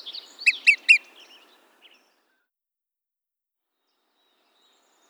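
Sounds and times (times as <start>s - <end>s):
olive-sided flycatcher calling: 0.0s - 1.5s.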